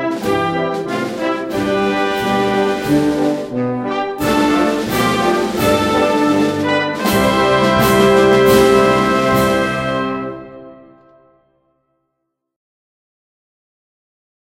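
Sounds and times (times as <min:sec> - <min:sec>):
anthem music: 0:00.0 - 0:11.5.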